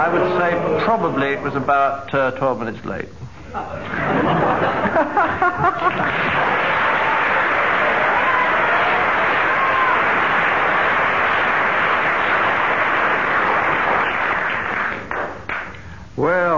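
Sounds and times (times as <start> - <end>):
speech: 0.0 - 6.9
laughter: 3.7 - 9.1
audience applause: 5.4 - 15.8.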